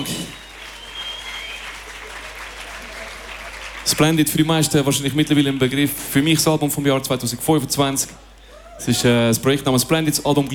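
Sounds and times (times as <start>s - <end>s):
faint whistle: 0.0s - 1.9s
crowd applauding: 0.0s - 5.9s
speech: 3.9s - 10.5s.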